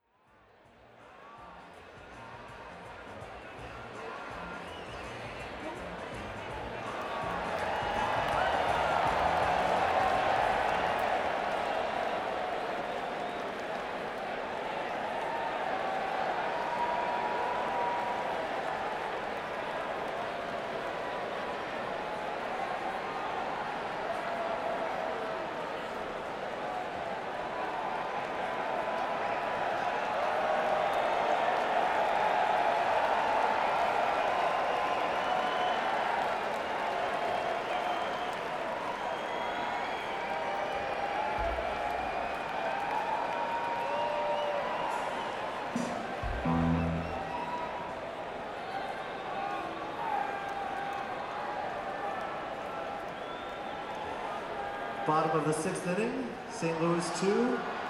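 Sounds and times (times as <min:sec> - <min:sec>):
crowd: 0:00.0 - 0:57.8.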